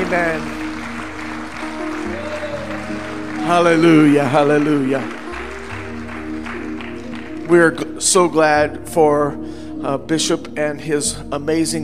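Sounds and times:
crowd clapping hands in praise: 0.0s - 8.0s
sustained organ-like tones: 0.0s - 8.6s
speech: 0.1s - 0.6s, 3.5s - 5.2s, 7.5s - 11.8s.

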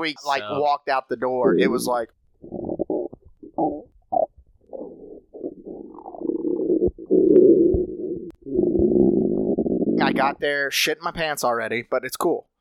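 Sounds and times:
speech: 0.0s - 2.6s, 10.2s - 12.5s
stomach rumbling: 1.4s - 10.2s.

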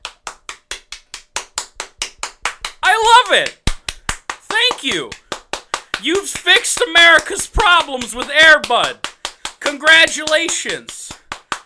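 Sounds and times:
hand clapping: 0.0s - 11.6s
speech: 3.3s - 3.6s, 4.8s - 5.2s, 6.0s - 11.2s.

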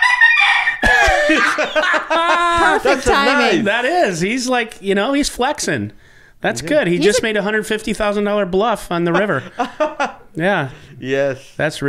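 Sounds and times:
rooster crowing: 0.0s - 2.2s
laughter: 0.0s - 3.8s, 6.6s - 7.4s, 9.0s - 11.0s
speech: 1.4s - 11.8s.

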